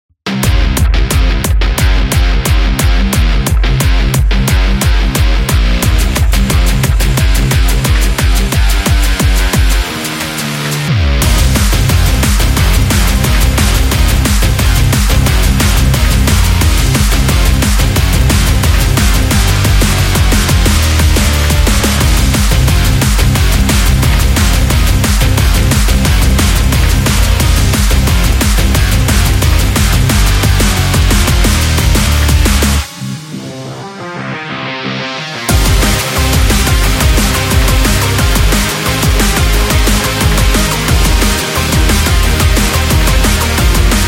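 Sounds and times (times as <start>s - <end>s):
positive energetic rock music: 0.2s - 44.0s.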